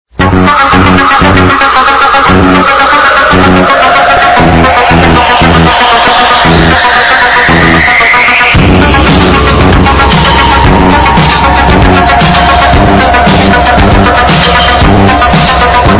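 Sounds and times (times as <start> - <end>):
bass: 0.0 - 15.9.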